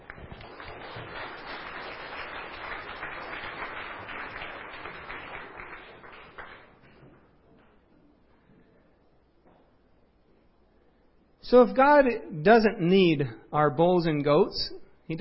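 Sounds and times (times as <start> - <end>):
audience applause: 0.0 - 6.9
speech: 11.5 - 15.1.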